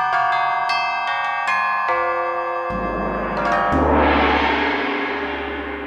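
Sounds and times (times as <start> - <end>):
gong: 0.1 - 5.8.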